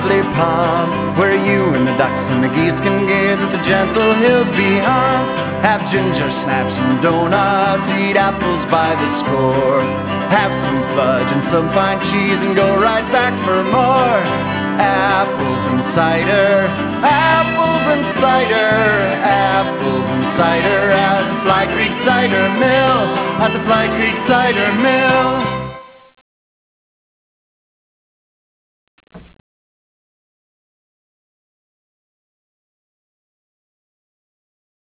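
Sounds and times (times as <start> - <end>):
jingle: 0.0 - 26.0.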